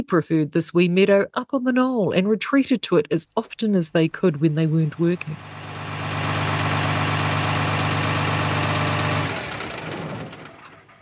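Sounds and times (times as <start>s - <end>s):
speech: 0.0s - 5.6s
truck engine idling: 4.9s - 10.9s.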